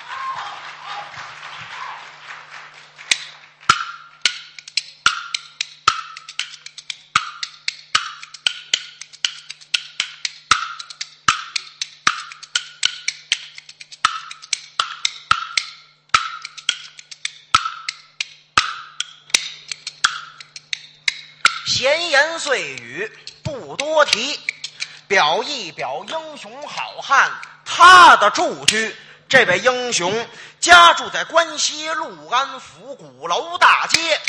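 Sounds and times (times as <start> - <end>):
applause: 0.0 - 3.7
bamboo clappers playing kuaiban rhythm: 0.0 - 32.0, 33.4 - 34.2
speech: 22.5 - 23.3, 23.9 - 24.5, 25.1 - 34.2.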